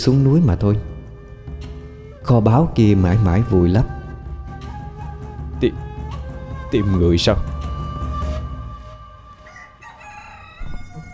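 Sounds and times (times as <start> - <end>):
speech: 0.0 - 0.9, 2.2 - 4.0, 5.6 - 5.8, 6.7 - 7.5
rooster crowing behind the house: 9.0 - 11.1.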